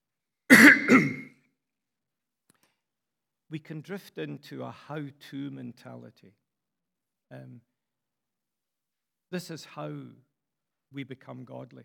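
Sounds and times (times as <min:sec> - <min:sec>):
person clearing throat: 0:00.5 - 0:01.3
speech: 0:03.5 - 0:06.4, 0:07.3 - 0:07.7, 0:09.3 - 0:10.3, 0:10.9 - 0:11.8.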